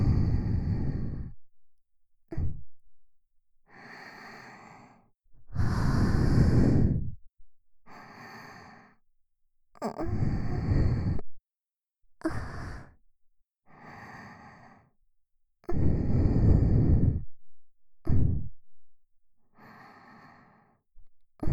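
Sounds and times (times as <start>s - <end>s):
sweet breathing loop: 0.0s - 1.5s, 2.3s - 2.8s, 3.6s - 7.2s, 7.9s - 9.0s, 10.1s - 11.2s, 12.2s - 13.0s, 13.7s - 15.0s, 15.7s - 17.4s, 18.1s - 18.6s, 19.5s - 20.8s.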